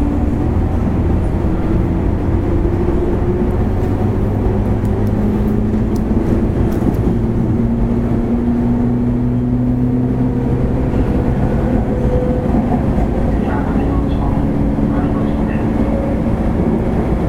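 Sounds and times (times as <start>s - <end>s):
JR West 103 series local train rumble on Hanwa Line: 0.0s - 17.2s.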